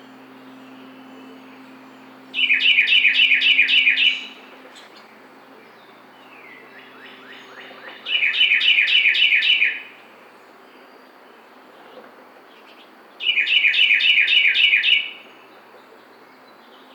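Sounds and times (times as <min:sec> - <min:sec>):
Carolina wren singing: 0:00.0 - 0:11.7, 0:12.5 - 0:16.9.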